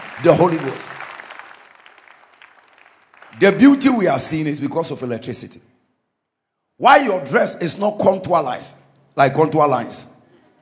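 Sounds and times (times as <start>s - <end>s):
audience clapping: 0.0s - 4.4s
speech: 0.2s - 1.1s, 3.4s - 5.7s, 6.8s - 10.1s.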